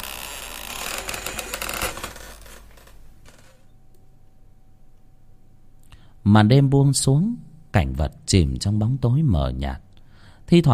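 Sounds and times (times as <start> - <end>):
wooden door slowly creaking shut: 0.0 - 3.6
speech: 6.3 - 9.9, 10.5 - 10.7.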